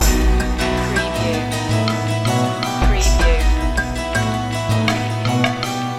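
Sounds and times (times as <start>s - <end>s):
music loop: 0.0s - 5.9s.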